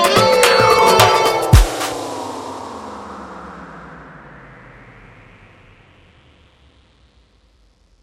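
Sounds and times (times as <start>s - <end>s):
afro groove music: 0.0s - 2.3s.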